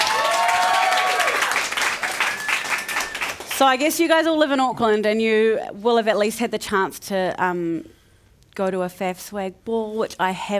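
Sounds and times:
whoops and cheers: 0.0s - 3.1s
audience applause: 0.0s - 3.6s
speech: 3.6s - 8.0s, 8.6s - 10.5s.

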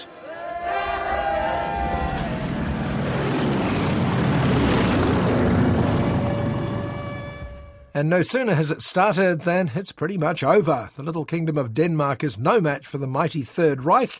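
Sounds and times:
low-flying planes passing overhead: 0.6s - 8.0s
speech: 8.0s - 14.1s.

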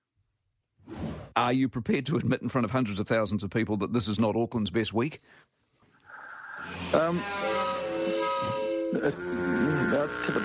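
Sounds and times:
speech: 1.4s - 5.6s, 6.7s - 7.7s, 8.9s - 10.4s
sirens of passing fire trucks and an ambulance: 6.9s - 10.0s.

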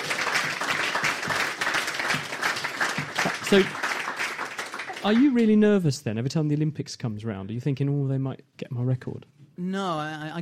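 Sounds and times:
people clapping: 0.0s - 5.8s
speech: 3.5s - 3.8s, 5.0s - 10.4s.

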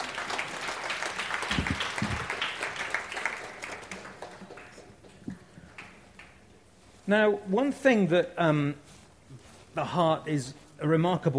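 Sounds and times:
audience applause: 0.0s - 6.4s
speech: 7.1s - 8.9s, 9.8s - 11.3s.

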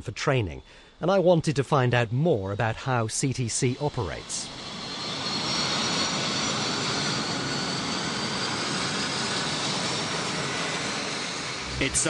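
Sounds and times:
speech: 0.0s - 4.6s, 11.8s - 12.0s
small training aircraft engines: 3.6s - 12.0s.

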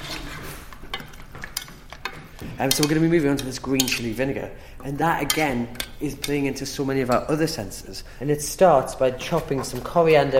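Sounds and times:
food being mashed and stirred with soy sauce and pepper: 0.0s - 7.5s
speech: 2.5s - 10.3s.

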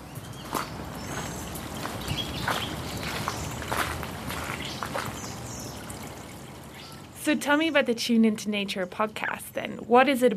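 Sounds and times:
stream trickling and bubbling: 0.0s - 9.4s
footsteps crunching beside a stream: 0.4s - 5.4s
speech: 7.3s - 10.3s.

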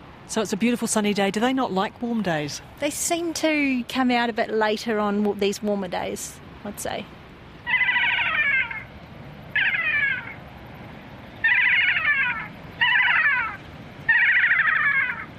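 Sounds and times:
faint background noise: 0.0s - 15.3s
speech: 0.3s - 7.2s
kea screeching calls: 7.6s - 8.9s, 9.5s - 10.4s, 11.4s - 15.3s.

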